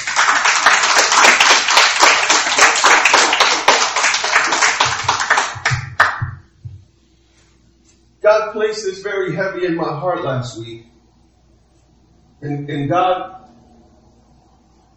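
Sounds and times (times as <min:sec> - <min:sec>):
round of applause, hand clapping: 0:00.0 - 0:06.4
speech: 0:08.6 - 0:10.9, 0:12.4 - 0:13.4.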